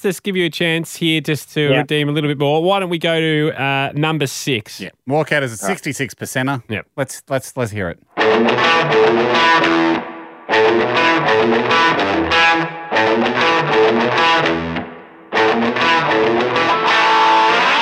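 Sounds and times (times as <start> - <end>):
speech: 0.0 - 10.1, 10.7 - 14.6
heavily distorted Fender electric guitar chords: 8.1 - 17.7.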